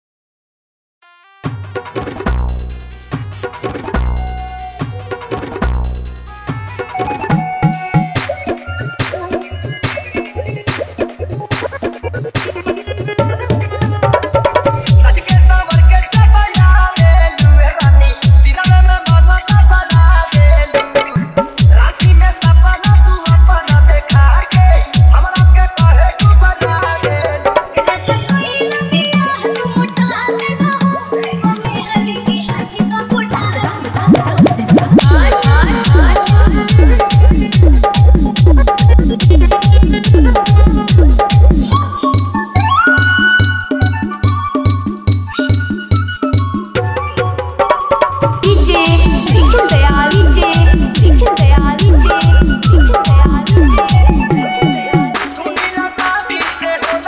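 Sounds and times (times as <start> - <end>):
old Bhojpuri DJ song: 2.3 - 14.1, 14.7 - 46.8, 48.4 - 57.0.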